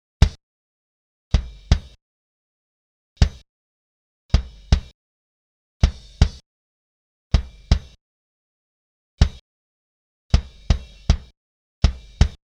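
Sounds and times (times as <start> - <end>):
kick drum: 1.4 - 2.0, 3.2 - 3.4, 4.3 - 5.0, 5.8 - 6.4, 7.4 - 8.0, 9.2 - 9.4, 10.3 - 12.4.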